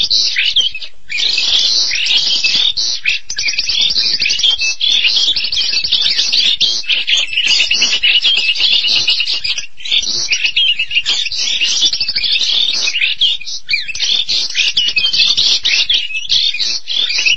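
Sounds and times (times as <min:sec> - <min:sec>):
starling singing scratchy jumble: 0:00.0 - 0:17.3.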